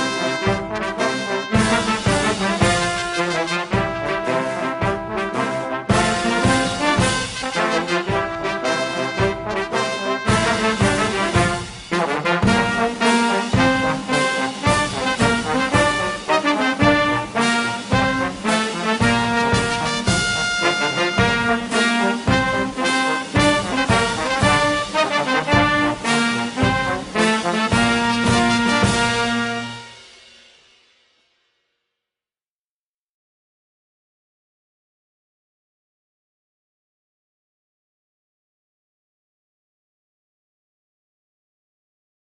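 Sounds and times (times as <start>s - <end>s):
instrumental national anthem: 0.0s - 30.8s.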